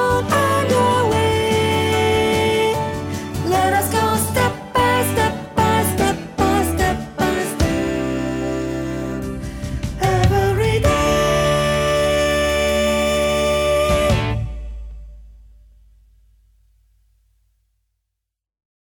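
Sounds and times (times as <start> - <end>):
soprano voice: 0.0 - 14.8.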